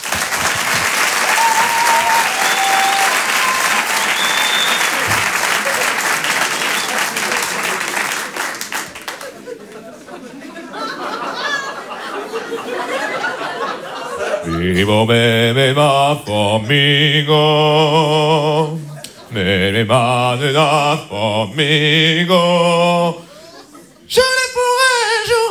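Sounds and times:
crowd whistles and cheers: 0.0s - 9.0s
large crowd applause: 0.0s - 15.0s
laughter and chatter: 0.0s - 15.8s, 18.4s - 20.4s, 22.6s - 24.4s
speech: 14.8s - 18.2s, 19.4s - 23.2s.

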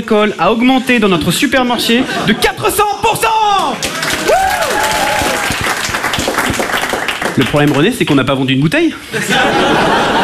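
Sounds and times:
speech: 0.0s - 4.4s, 7.4s - 10.2s
laughter: 1.6s - 3.0s, 9.0s - 10.2s
audience applause: 3.6s - 8.0s.

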